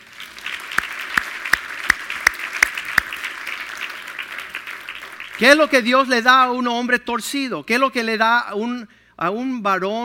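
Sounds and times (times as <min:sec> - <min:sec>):
audience applause: 0:00.0 - 0:05.9
speech: 0:05.4 - 0:10.0.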